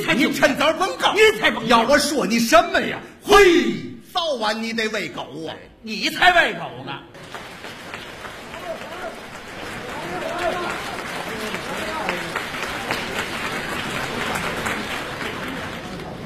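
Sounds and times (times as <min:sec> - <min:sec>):
speech: 0:00.0 - 0:07.4
audience applause at a live crosstalk comedy performance: 0:07.2 - 0:16.2.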